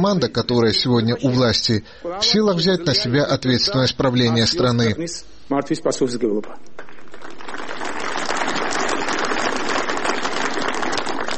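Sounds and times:
speech: 0:00.0 - 0:06.8
crowd applause: 0:06.8 - 0:11.3.

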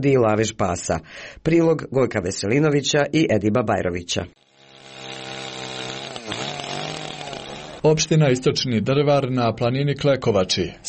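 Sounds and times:
speech: 0:00.0 - 0:04.4, 0:07.8 - 0:10.8
chainsaw cutting wood: 0:04.4 - 0:08.1.

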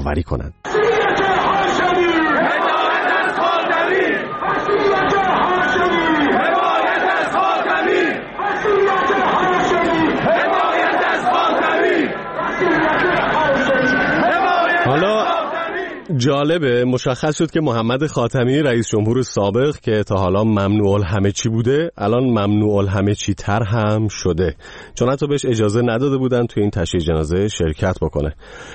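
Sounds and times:
speech: 0:00.0 - 0:00.9, 0:16.2 - 0:28.7
large crowd chanting slogans at a funeral: 0:00.6 - 0:16.1.

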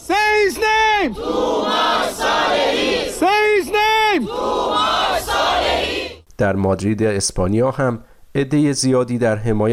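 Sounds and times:
speech: 0:00.1 - 0:01.5, 0:06.4 - 0:09.7
large crowd chanting in unison at a loud rally: 0:00.4 - 0:06.2.

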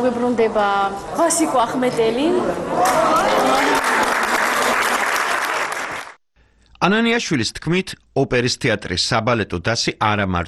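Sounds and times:
speech: 0:00.0 - 0:03.8, 0:06.8 - 0:10.4
large audience applause in an opera theatre hall: 0:02.8 - 0:06.2.

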